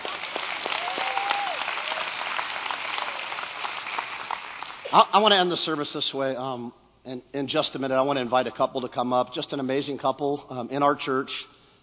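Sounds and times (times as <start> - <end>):
audience clapping together: 0.0 - 5.1
speech: 4.9 - 11.5.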